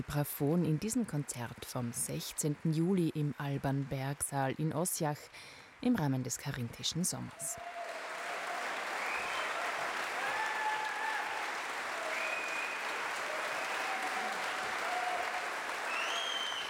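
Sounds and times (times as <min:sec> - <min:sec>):
speech: 0:00.0 - 0:07.8
concert audience applause in the Alban-Berg-Saal in Ossiach calling for an encore: 0:07.4 - 0:16.6.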